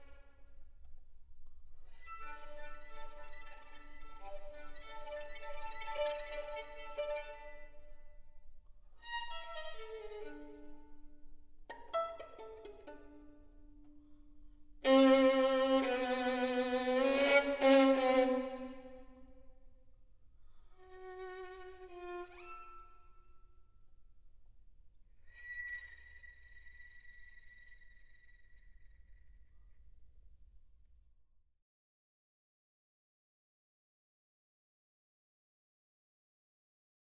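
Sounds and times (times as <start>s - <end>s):
solo violin piece: 1.9s - 8.3s, 9.0s - 14.0s, 14.8s - 19.4s, 20.8s - 23.2s.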